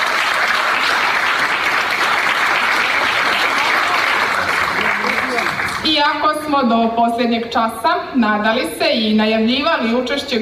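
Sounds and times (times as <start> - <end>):
audience applause for folk dance groups at an evening folklore performance: 0.0 - 5.9
speech: 6.1 - 10.4.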